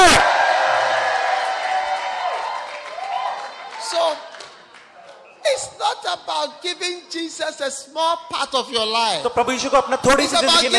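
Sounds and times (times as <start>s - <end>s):
audience shouting praise: 0.0s - 3.9s
speech: 6.2s - 10.7s.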